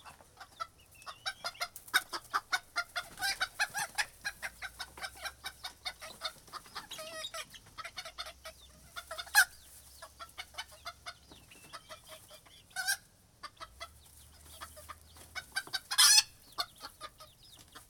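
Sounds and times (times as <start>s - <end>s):
chickens clucking: 0.0s - 17.8s.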